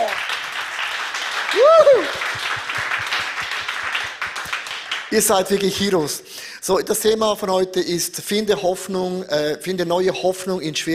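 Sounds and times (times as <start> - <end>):
audience applause: 0.0 - 5.8
speech: 5.1 - 10.9.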